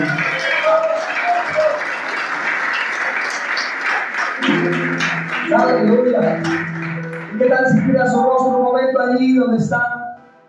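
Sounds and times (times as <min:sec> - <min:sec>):
audience applause: 0:00.0 - 0:08.2
speech: 0:07.4 - 0:10.0.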